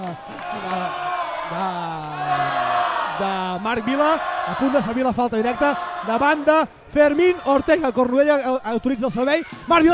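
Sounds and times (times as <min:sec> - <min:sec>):
crowd roar cheering on a player during a match: 0:00.0 - 0:09.9
speech: 0:00.1 - 0:02.4, 0:03.2 - 0:09.9.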